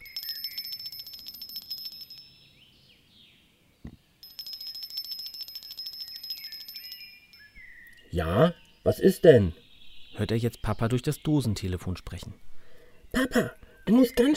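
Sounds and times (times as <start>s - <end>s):
bell rung by pulling a bell cord: 0.0s - 2.5s, 4.2s - 7.6s
speech: 8.2s - 9.6s, 10.2s - 12.5s, 13.1s - 14.3s.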